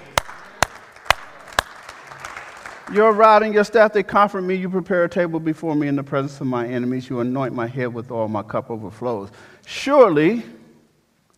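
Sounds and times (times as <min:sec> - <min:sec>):
audience clapping: 0:00.0 - 0:03.6
speech: 0:02.9 - 0:10.6.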